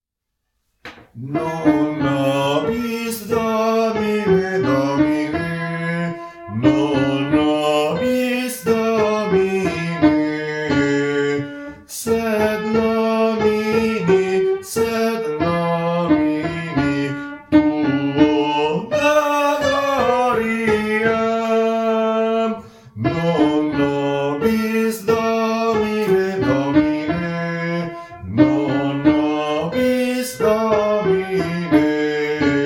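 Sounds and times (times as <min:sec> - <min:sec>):
sopranos singing: 0:01.2 - 0:32.6.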